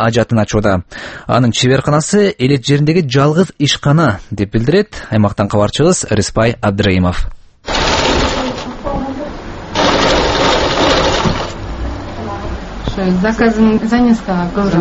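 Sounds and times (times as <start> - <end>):
speech: 0.0 - 7.4, 13.0 - 14.7
sewing machine stitching an item at a small rural sewing workshop: 7.7 - 8.8, 9.7 - 11.7.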